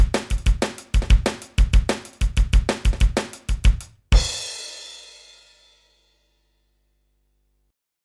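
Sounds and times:
drum and bass music: 0.0 - 4.7.

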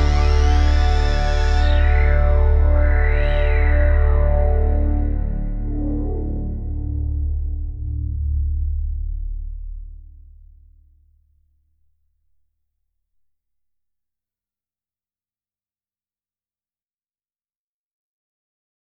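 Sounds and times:
Gaia2 synth pad: 0.0 - 10.5.

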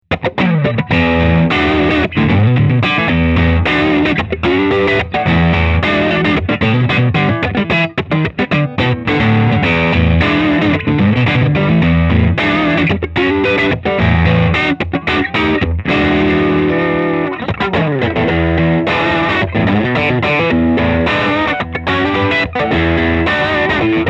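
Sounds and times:
SE Electronics VR2 crunch guitar: 0.0 - 24.0.

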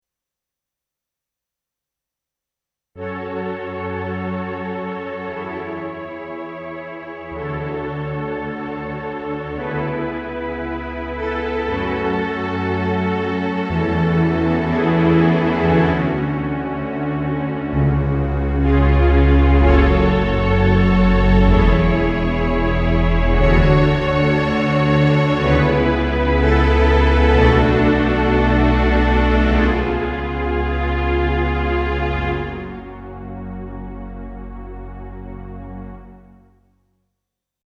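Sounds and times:
synth pad: 7.1 - 36.4.

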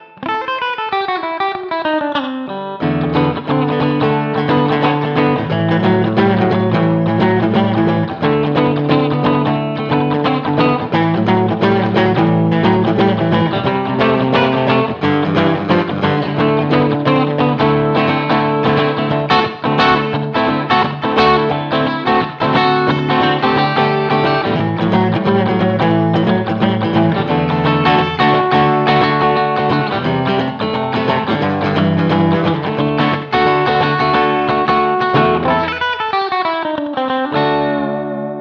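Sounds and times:
rock and roll electric guitar on bridge pickup: 0.0 - 38.3.

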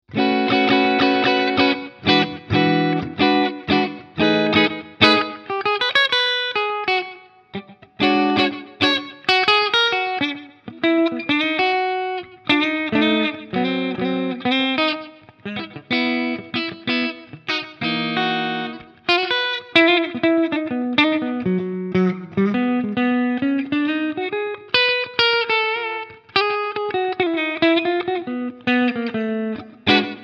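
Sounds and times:
Custom 24 middle pickup clean tone: 0.1 - 30.2.

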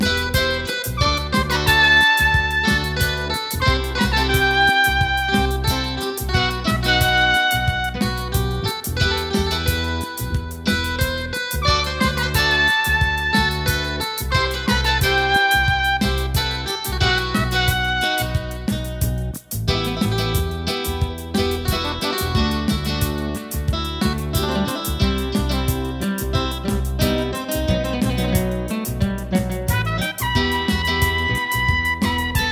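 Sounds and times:
Mellotron Trumpet: 0.0 - 10.2, 11.4 - 20.1, 29.7 - 32.5
Mellotron Micro Guitar: 0.0 - 32.5.

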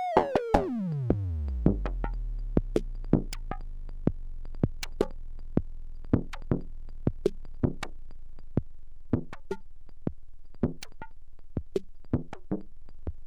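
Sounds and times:
drums: 0.2 - 8.0, 8.6 - 13.2.

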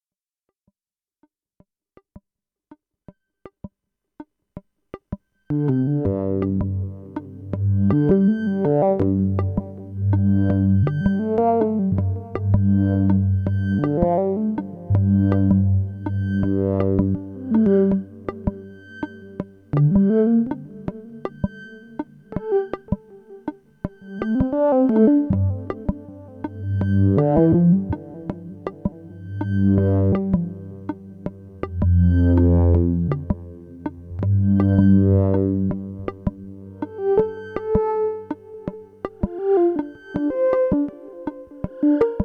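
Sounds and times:
synthesizer with LFO modulation: 5.5 - 42.2.

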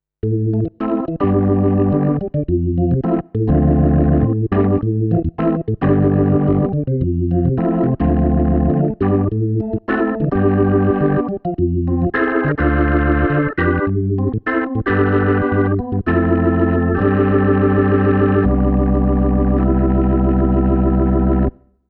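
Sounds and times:
organ: 0.2 - 21.7.

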